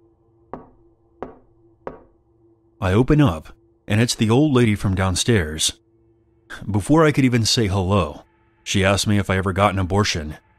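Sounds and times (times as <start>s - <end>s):
knock at a door: 0.5s - 2.1s
speech: 2.8s - 5.8s, 6.5s - 10.4s.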